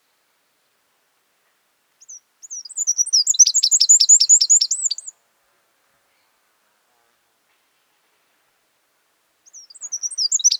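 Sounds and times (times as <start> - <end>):
Eurasian wren singing shrill trill: 2.0 - 5.1, 9.5 - 10.5.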